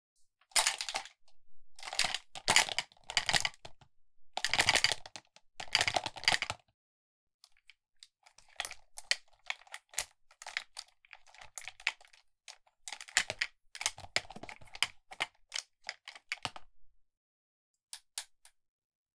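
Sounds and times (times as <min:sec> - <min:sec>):
stationery handling: 0:00.5 - 0:01.1, 0:01.8 - 0:03.8, 0:04.4 - 0:06.6, 0:09.4 - 0:16.4.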